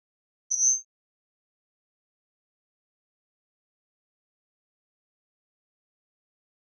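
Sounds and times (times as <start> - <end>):
electronic flash beep: 0.5 - 0.8.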